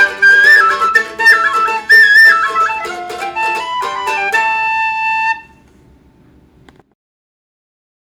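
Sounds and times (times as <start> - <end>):
Mando whistle: 0.0 - 5.6.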